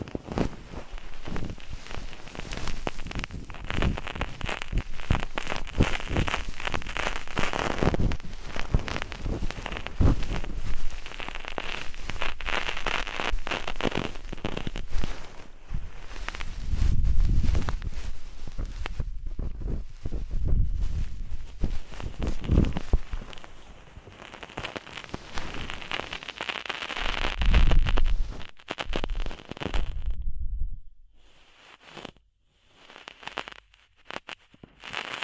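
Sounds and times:
ear cleaning crackling scratches and rustles: 0.0 - 30.2, 31.2 - 35.2
low thumps: 16.6 - 23.4, 27.1 - 31.2.

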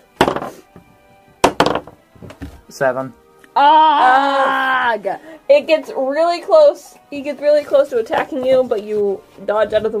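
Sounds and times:
d20 die rolling across a tabletop: 0.2 - 0.6, 1.4 - 2.6
speech: 2.7 - 9.9.

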